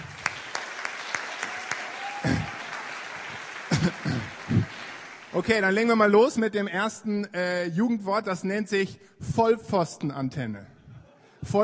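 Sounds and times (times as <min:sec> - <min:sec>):
audience applause: 0:00.0 - 0:05.8
speech: 0:05.4 - 0:10.7, 0:11.4 - 0:11.6.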